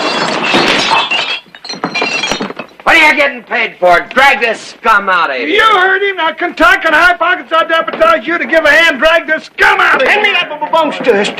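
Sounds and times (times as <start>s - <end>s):
glass pieces tinkling: 0.0s - 2.9s
drinking glasses knocked over and breaking: 0.0s - 3.1s
speech: 3.1s - 11.3s.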